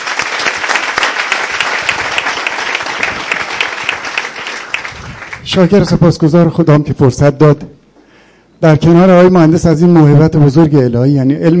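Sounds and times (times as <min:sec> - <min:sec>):
audience applause at an addiction-recovery gathering: 0:00.0 - 0:05.7
speech: 0:05.6 - 0:07.8, 0:08.6 - 0:11.5.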